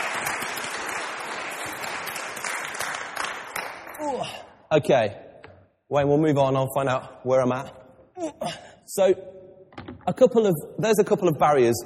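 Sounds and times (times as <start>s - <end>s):
audience applause: 0.0s - 4.0s
speech: 4.1s - 5.2s, 5.9s - 9.3s, 10.1s - 11.8s.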